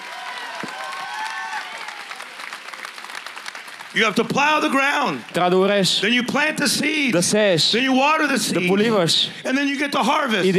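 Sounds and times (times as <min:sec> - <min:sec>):
cheers and whistles: 0:00.0 - 0:02.4
audience applauding: 0:00.0 - 0:06.1
speech: 0:03.9 - 0:10.5.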